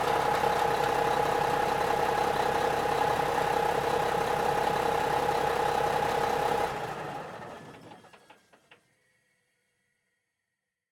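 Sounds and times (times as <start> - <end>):
Mack semi truck: 0.0 - 8.1.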